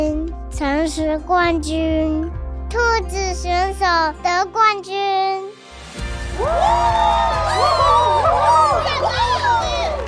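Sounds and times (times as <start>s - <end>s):
speech: 0.5s - 5.6s, 6.4s - 9.3s
crowd applauding and cheering: 6.0s - 10.0s.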